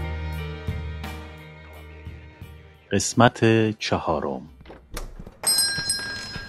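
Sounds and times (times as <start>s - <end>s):
speech: 3.0s - 4.6s
shop door bell jingling: 5.4s - 6.4s.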